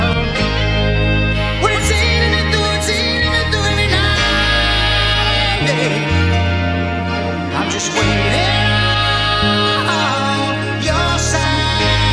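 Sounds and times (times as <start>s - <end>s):
music without drums: 0.0s - 12.1s.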